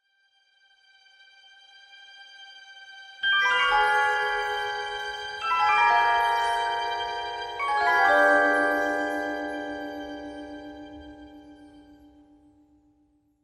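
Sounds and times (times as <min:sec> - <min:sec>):
jingle: 0:03.2 - 0:12.8.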